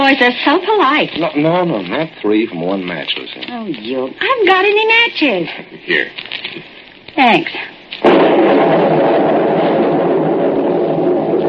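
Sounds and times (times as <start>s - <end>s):
speech: 0.1s - 9.2s
thunder from a lightning strike: 8.0s - 11.4s.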